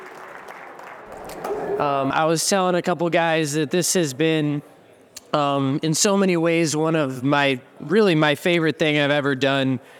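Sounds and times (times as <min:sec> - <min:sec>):
audience applause: 0:00.0 - 0:02.0
speech: 0:01.1 - 0:09.9.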